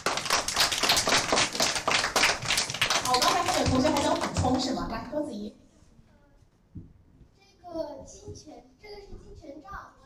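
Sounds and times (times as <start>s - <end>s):
class of students clapping: 0.0s - 4.7s
speech: 4.5s - 5.7s.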